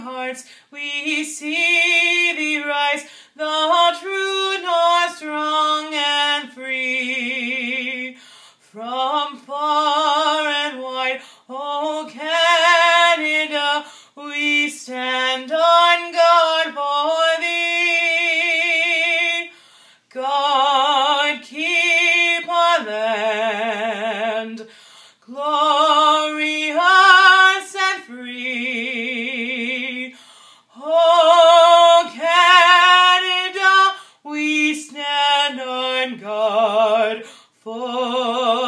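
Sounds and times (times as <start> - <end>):
woman loudly singing a national anthem: 0.0 - 38.6.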